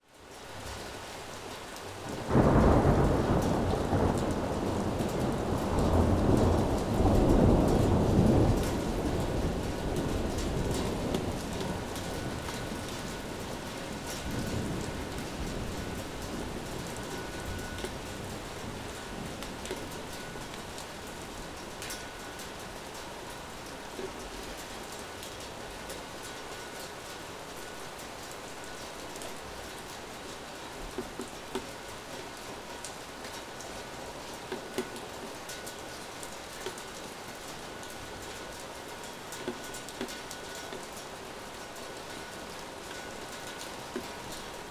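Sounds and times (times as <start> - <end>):
thunderstorm: 2.0 - 22.8.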